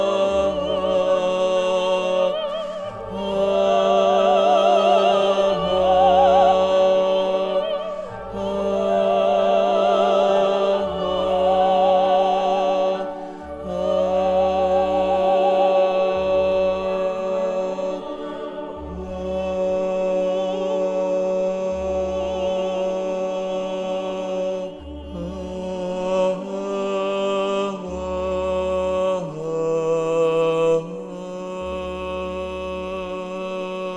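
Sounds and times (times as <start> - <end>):
tenors singing an opera barcarolle: 0.0 - 33.9.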